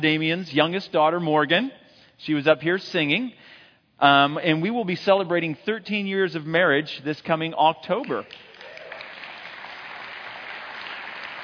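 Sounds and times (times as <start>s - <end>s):
speech: 0.0s - 8.5s
audience applause: 8.3s - 11.4s.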